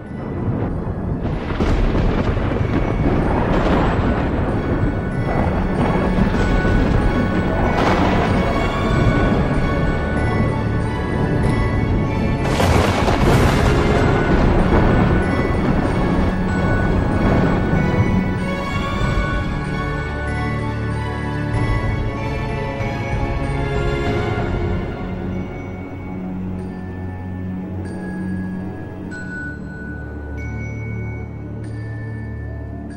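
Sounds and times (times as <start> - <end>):
loud crashing lightning strikes: 0.0 - 20.2
rumbling thunder: 0.0 - 30.2
continuous roaring crackling storm wash: 0.0 - 31.4.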